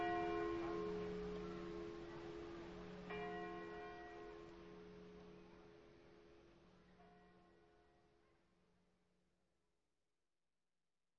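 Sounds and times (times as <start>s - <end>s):
bells ringing in Lignano: 0.0s - 8.4s.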